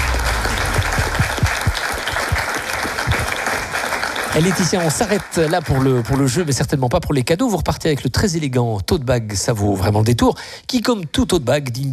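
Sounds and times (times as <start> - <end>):
audience applause: 0.0 - 6.5
speech: 4.4 - 11.9.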